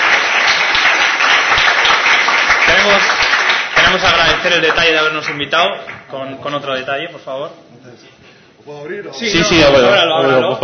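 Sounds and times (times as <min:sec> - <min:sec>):
audience applause: 0:00.0 - 0:06.0
speech: 0:02.9 - 0:03.1, 0:03.9 - 0:10.6.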